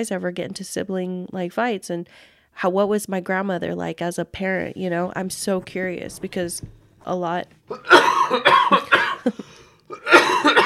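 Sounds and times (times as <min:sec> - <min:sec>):
speech: 0:00.0 - 0:10.2
person coughing harshly: 0:07.7 - 0:10.6.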